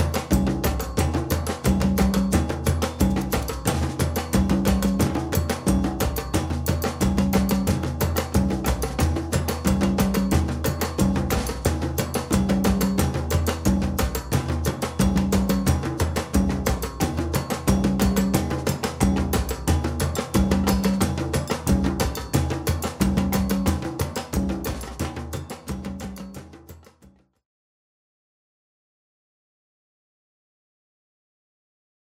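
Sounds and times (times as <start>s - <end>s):
music groove: 0.0s - 26.9s.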